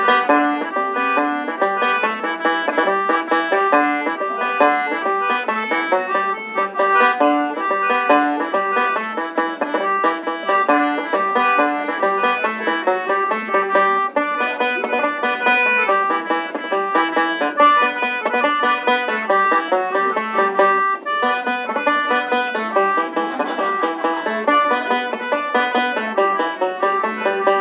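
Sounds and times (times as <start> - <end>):
polka music: 0.0 - 27.6
laughter: 2.2 - 17.2, 17.8 - 27.6.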